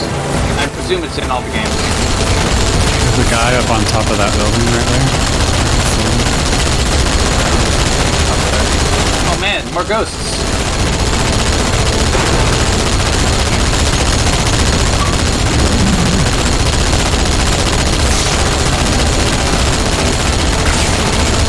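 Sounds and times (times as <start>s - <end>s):
speech: 0.9s - 2.4s, 3.2s - 6.6s, 9.4s - 10.5s
rapid automatic gunfire from turrets in the Halo video game: 1.6s - 21.4s.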